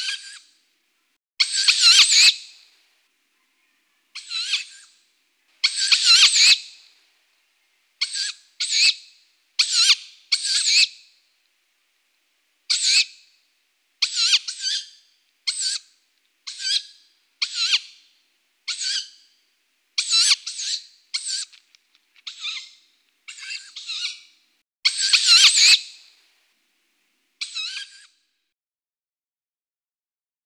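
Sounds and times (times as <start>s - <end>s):
Strix aluco chicks calling: 0.0s - 0.6s, 1.4s - 2.7s, 3.4s - 11.2s, 12.7s - 13.4s, 14.0s - 19.4s, 20.0s - 26.2s, 27.4s - 28.2s.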